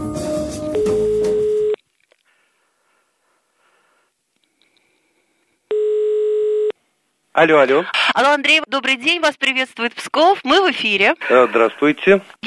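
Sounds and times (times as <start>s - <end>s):
telephone ringing tone while a call is placed: 0.8s - 1.8s, 5.7s - 6.8s
faint clicks: 4.3s - 5.5s
speech: 7.4s - 12.4s.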